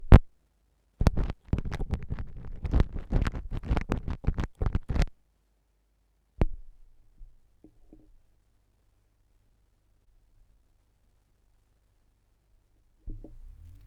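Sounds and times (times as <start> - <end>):
vinyl record crackle: 0.0 - 0.3, 1.0 - 5.1, 13.3 - 13.8.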